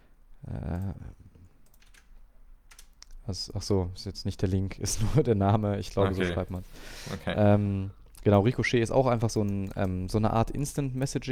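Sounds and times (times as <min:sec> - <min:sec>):
computer keyboard clicks while pasting text: 0:01.6 - 0:03.2
speech: 0:03.3 - 0:11.3.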